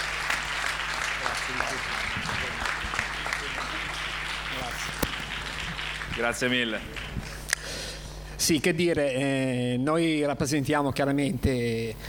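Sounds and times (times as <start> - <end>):
applause: 0.0 - 7.3
speech: 1.5 - 2.7, 3.4 - 5.2, 6.2 - 7.0, 8.4 - 12.0.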